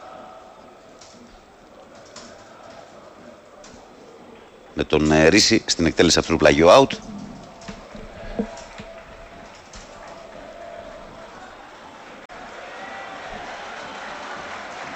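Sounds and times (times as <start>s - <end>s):
stadium crowd cheering: 0.0s - 14.9s
speech: 4.8s - 7.1s
stadium crowd applauding: 7.4s - 14.9s.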